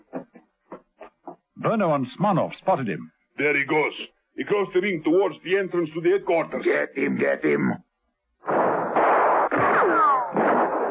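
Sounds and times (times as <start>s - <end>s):
speech: 1.6s - 7.8s
gunshots in a bullring: 8.4s - 10.9s
high whining bullet ricochets: 8.6s - 10.9s.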